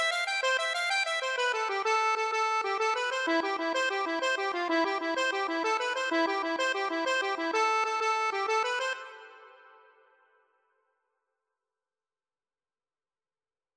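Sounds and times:
accordion: 0:00.0 - 0:10.0.

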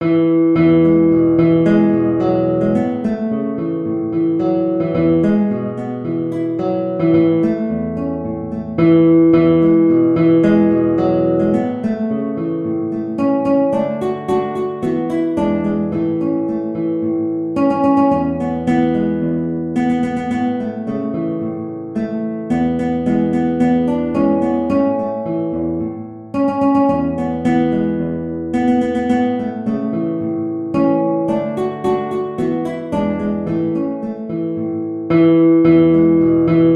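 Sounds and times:
guitar: 0:00.0 - 0:36.7.

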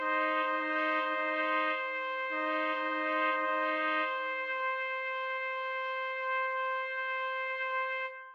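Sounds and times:
trumpet trio playing classical piece: 0:00.0 - 0:08.2.

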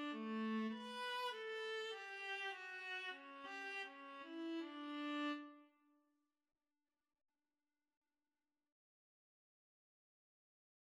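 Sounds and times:
viola duet: 0:00.0 - 0:05.6.

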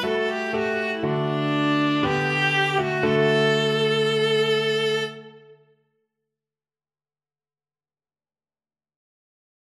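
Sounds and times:
viola playing: 0:00.0 - 0:05.7.

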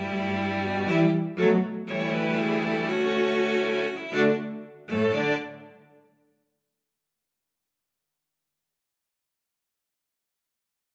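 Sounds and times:
cello ensemble playing habanera: 0:00.0 - 0:05.6.

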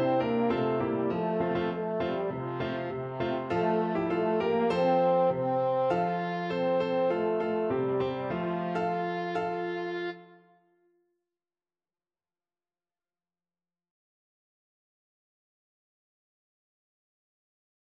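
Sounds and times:
French horn: 0:00.0 - 0:10.4.

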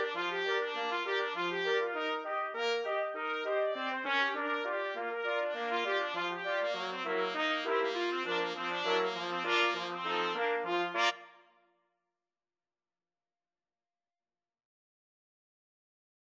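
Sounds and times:
trumpet quartet playing rag: 0:00.0 - 0:11.2.

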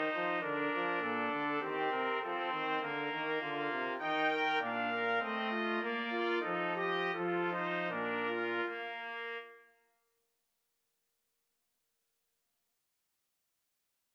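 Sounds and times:
trombone: 0:00.0 - 0:09.5
trumpet melody: 0:00.0 - 0:09.8.

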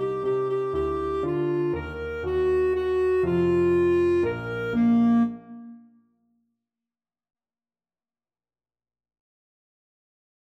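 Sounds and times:
clarinet: 0:00.0 - 0:06.1.

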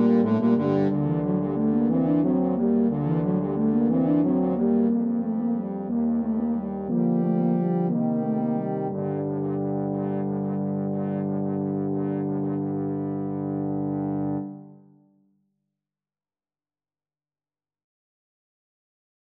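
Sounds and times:
lower brass quartet: 0:00.0 - 0:14.8.

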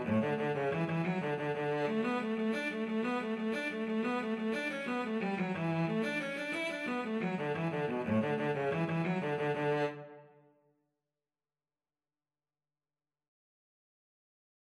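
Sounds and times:
cello duet playing Irish jig medley: 0:00.0 - 0:06.3, 0:06.9 - 0:10.0.

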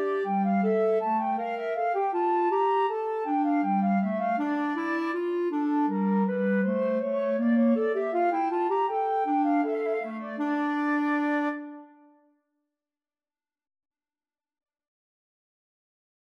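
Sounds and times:
two flutes playing a bourree: 0:00.0 - 0:12.2.

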